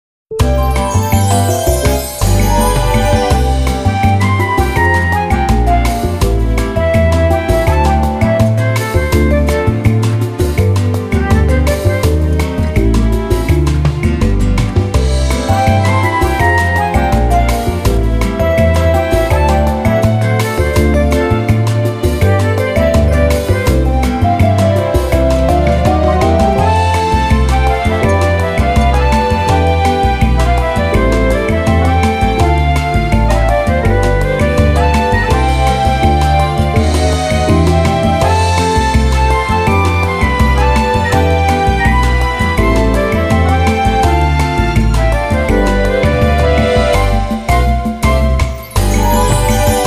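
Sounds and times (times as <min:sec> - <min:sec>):
menu event music: 0:00.3 - 0:13.4, 0:14.7 - 0:49.8.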